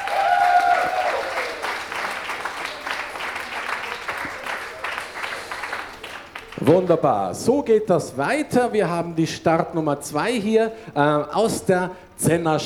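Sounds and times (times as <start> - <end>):
applause: 0.0 - 7.0
speech: 6.6 - 12.6.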